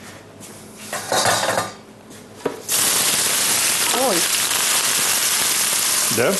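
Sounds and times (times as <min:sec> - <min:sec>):
cooking pan and utensils clattering: 0:00.9 - 0:01.8
onion sizzling with garlic in a hot cooking pan: 0:02.7 - 0:06.3
speech: 0:06.2 - 0:06.3.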